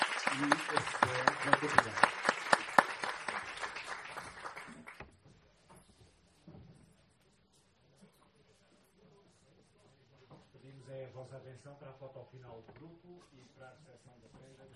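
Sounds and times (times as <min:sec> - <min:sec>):
audience applause after a conference panel: 0:00.0 - 0:05.0
speech: 0:00.4 - 0:02.1, 0:11.4 - 0:14.7.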